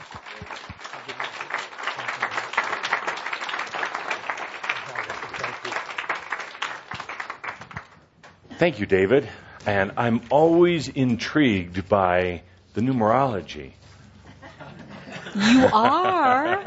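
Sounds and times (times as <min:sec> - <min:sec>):
audience applause: 0:00.0 - 0:08.0
speech: 0:08.6 - 0:13.8, 0:15.4 - 0:16.6
laughter: 0:14.2 - 0:16.6.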